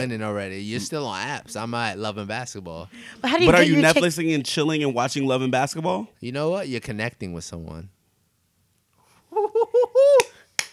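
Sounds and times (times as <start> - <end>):
speech: 0.0 - 8.0
one person clapping: 10.2 - 10.7.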